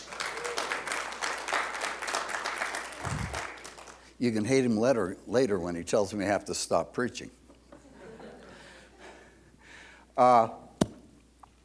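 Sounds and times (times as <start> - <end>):
audience applause: 0.0 - 4.0
speech: 4.2 - 7.4, 10.2 - 10.6.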